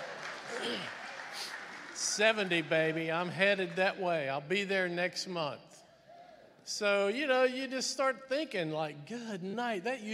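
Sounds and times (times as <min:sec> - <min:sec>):
crowd clapping: 0:00.0 - 0:04.4
speech: 0:02.2 - 0:05.7, 0:06.7 - 0:10.1.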